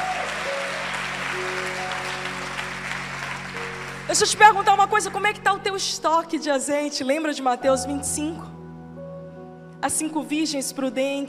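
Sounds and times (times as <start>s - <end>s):
crowd clapping: 0.0s - 4.6s
speech: 4.1s - 8.6s, 9.8s - 11.2s.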